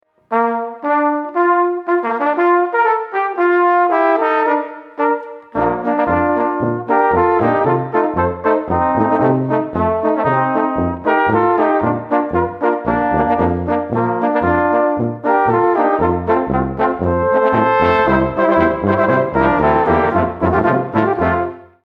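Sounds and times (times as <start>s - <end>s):
march music: 0.3s - 21.8s.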